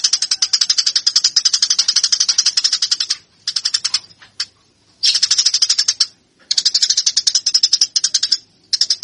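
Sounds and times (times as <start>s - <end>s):
Eurasian tree sparrow chattering: 0.0s - 9.0s.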